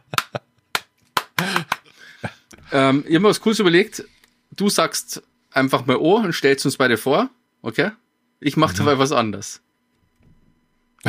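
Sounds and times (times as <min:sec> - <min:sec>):
sharp dry hand claps in front of a camera: 0:00.0 - 0:01.9
speech: 0:02.7 - 0:09.7.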